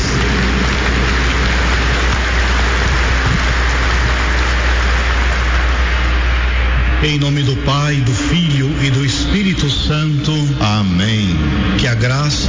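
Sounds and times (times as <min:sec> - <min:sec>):
large audience applauding: 0:00.0 - 0:06.8
speech: 0:07.0 - 0:12.4.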